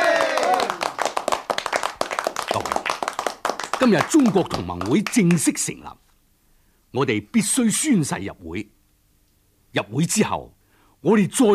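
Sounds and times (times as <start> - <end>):
group applauding: 0.0 - 5.7
speech: 3.8 - 6.0, 6.9 - 8.8, 9.7 - 11.5.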